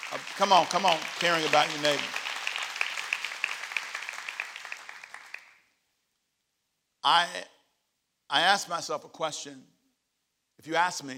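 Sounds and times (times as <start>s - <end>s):
audience clapping: 0.0s - 5.7s
speech: 0.1s - 2.2s, 7.0s - 7.5s, 8.3s - 9.8s, 10.6s - 11.1s.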